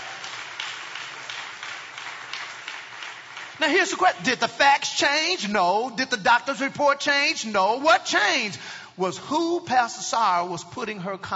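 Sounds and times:
audience clapping: 0:00.0 - 0:04.6
speech: 0:03.6 - 0:11.3.

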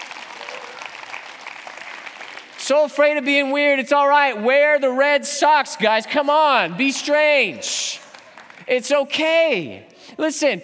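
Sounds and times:
audience clapping: 0:00.0 - 0:03.3, 0:06.8 - 0:09.0
speech: 0:02.7 - 0:08.0, 0:08.7 - 0:10.6.

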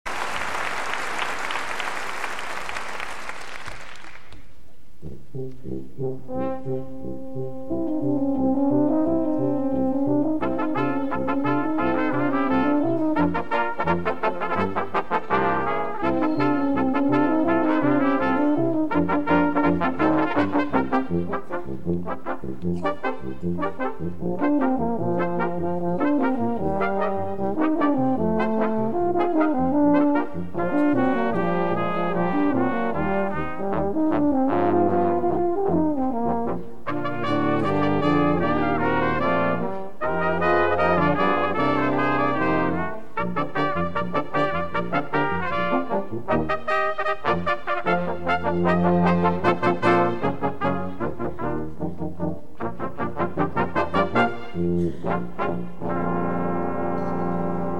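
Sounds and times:
brass Christmas tune: 0:00.1 - 0:57.7.

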